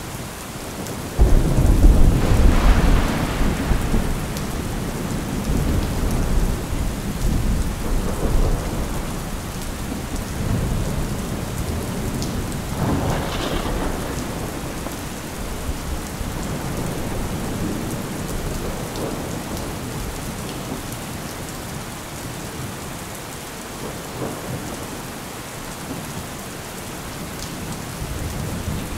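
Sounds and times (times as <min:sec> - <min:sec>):
rain: 0:00.0 - 0:28.9
thunder: 0:01.2 - 0:19.8.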